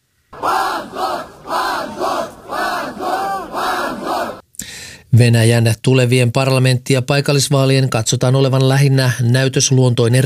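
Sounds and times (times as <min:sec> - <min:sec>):
crowd of youths shouting outside a courthouse: 0:00.4 - 0:04.4
speech: 0:05.2 - 0:10.2.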